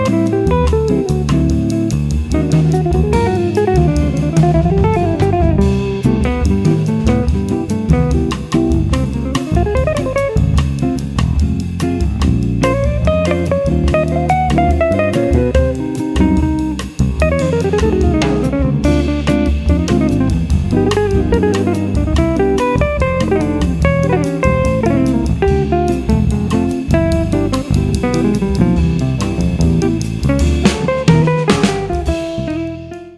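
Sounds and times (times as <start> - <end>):
bass: 0.0 - 33.1
drums: 0.0 - 33.1
guitar: 0.0 - 33.1.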